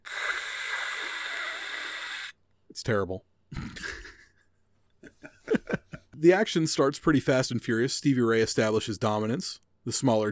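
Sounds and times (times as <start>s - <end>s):
hand air dryer blowing: 0.0s - 2.4s
speech: 2.8s - 4.0s, 6.2s - 10.3s.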